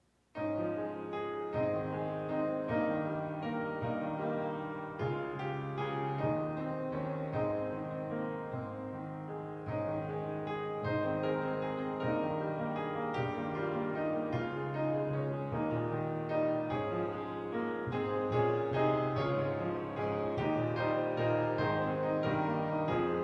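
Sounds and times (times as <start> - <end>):
piano: 0.0 - 23.2.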